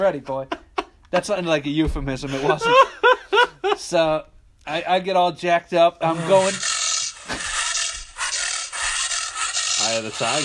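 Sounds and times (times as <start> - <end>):
speech: 0.0 - 3.0, 3.8 - 6.7, 9.9 - 10.4
laughter: 2.2 - 4.0
person imitating excited snorting and snuffing: 6.2 - 10.4.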